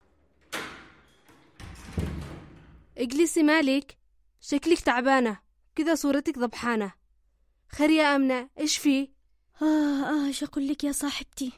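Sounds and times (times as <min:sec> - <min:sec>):
door being opened: 0:00.0 - 0:03.0
knock or thud: 0:01.6 - 0:02.8
speech: 0:03.0 - 0:07.0, 0:07.7 - 0:11.5.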